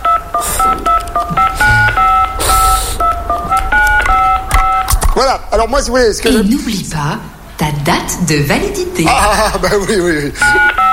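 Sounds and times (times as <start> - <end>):
phone keypad tones typing card digits: 0.0 - 4.9, 10.4 - 10.9
speech: 5.3 - 10.8.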